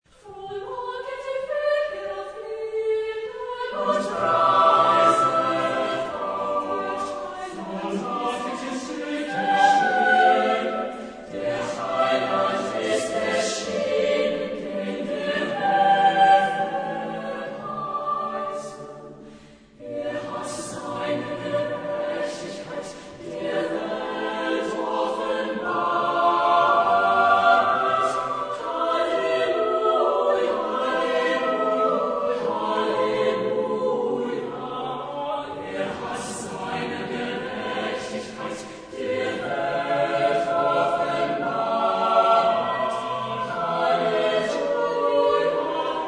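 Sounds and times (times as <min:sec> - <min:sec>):
chorus singing an anthem: 0:00.1 - 0:46.0.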